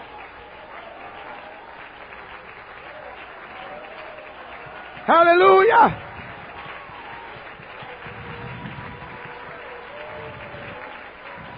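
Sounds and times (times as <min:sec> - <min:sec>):
audience clapping hands: 0:00.0 - 0:11.5
speech: 0:05.1 - 0:06.1.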